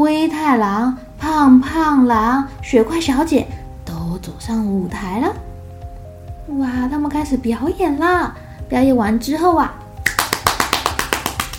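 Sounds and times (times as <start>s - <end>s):
speech: 0.0s - 5.5s, 6.5s - 9.8s
enthusiastic applause: 10.1s - 11.5s.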